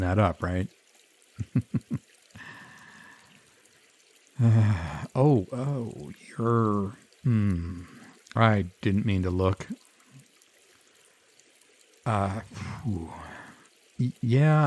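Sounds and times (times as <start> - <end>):
speech: 0.0 - 0.8, 1.4 - 2.0, 4.4 - 9.8, 12.0 - 13.4, 14.0 - 14.6
water pouring and trickling: 0.0 - 14.6
person crying out and gasping: 4.4 - 5.0.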